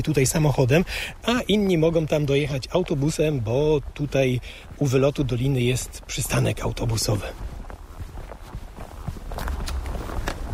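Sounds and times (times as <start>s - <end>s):
speech: 0.0s - 7.5s
faint outdoor background: 0.0s - 10.5s
footsteps on asphalt: 0.0s - 10.5s
trekking poles tapping on asphalt: 1.3s - 10.5s.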